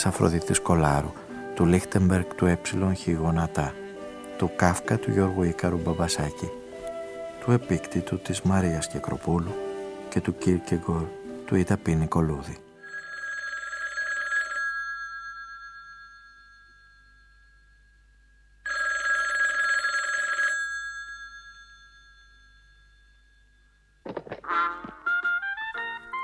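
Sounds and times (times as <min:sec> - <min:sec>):
speech: 0:00.0 - 0:03.8, 0:04.4 - 0:06.6, 0:07.4 - 0:12.6
telephone ringing: 0:12.8 - 0:17.8, 0:18.6 - 0:26.2.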